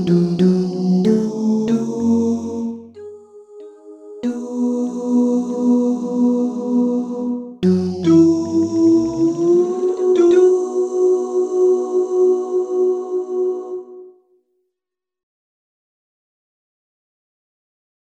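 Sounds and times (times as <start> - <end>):
baritone singing learning track: 0.0 - 3.1, 4.2 - 14.0.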